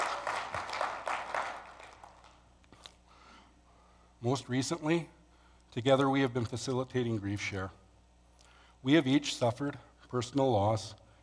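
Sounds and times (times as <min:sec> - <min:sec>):
people clapping: 0:00.0 - 0:02.5
speech: 0:04.2 - 0:05.2, 0:05.8 - 0:07.8, 0:08.8 - 0:11.0.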